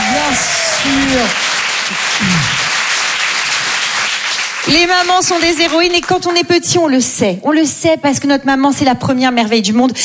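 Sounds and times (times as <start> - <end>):
audience applauding for all the mothers of the world: 0.0 - 5.9
speech: 0.4 - 2.6, 4.7 - 10.0.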